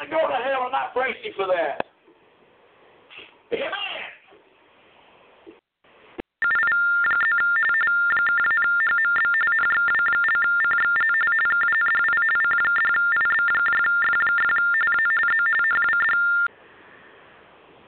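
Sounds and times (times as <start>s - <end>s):
speech: 0.1s - 1.9s
telephone ringing: 6.4s - 16.5s.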